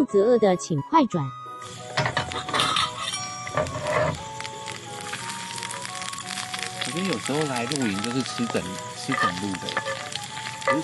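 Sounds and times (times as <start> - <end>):
speech: 0.0 - 1.8, 3.6 - 4.3, 6.9 - 10.8
steak sizzling while pan-frying: 1.6 - 10.8.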